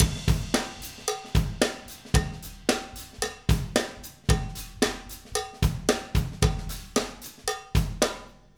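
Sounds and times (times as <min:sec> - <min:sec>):
live acoustic drums playing: 0:00.0 - 0:08.4.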